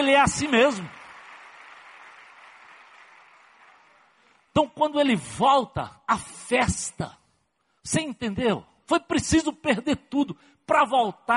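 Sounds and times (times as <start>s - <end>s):
speech: 0.0s - 1.0s, 4.6s - 7.2s, 7.8s - 11.3s
audience applause: 0.0s - 4.5s.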